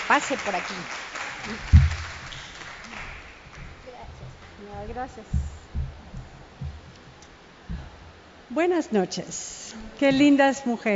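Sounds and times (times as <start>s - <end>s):
welcoming applause: 0.0s - 3.7s
speech: 0.1s - 1.8s, 4.8s - 5.6s, 8.5s - 10.9s.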